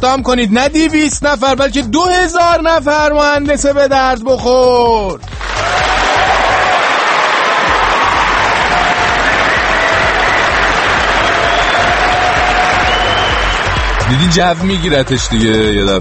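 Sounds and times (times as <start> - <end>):
speech: 0.0 - 5.8, 14.1 - 15.9
audience clapping at an official meeting: 5.2 - 15.9.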